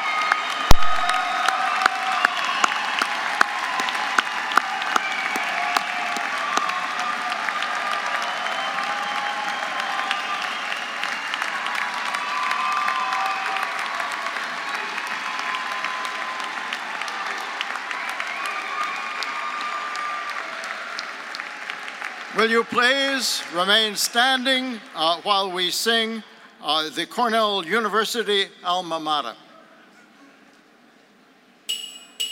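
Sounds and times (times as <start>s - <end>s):
faint cheers: 0.0s - 23.8s
standing audience applauding at a Cornell University ceremony: 0.0s - 25.4s
speech: 22.4s - 29.4s.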